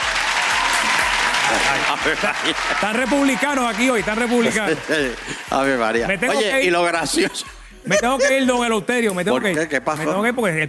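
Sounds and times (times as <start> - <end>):
audience applause: 0.0 - 6.3
speech: 1.5 - 10.6
laughter: 4.2 - 8.8.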